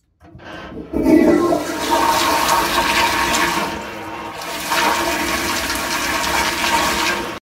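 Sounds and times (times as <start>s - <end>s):
toilet: 0.0s - 7.4s.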